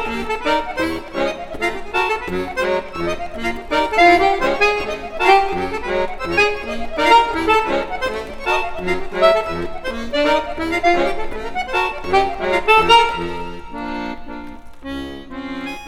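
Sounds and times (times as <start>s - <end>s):
waltz music: 0.0s - 15.8s.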